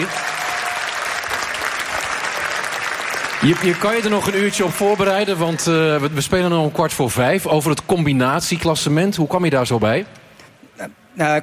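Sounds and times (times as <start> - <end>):
speech: 0.0 - 0.3, 3.4 - 10.2, 10.8 - 11.4
café audience applause: 0.0 - 6.1.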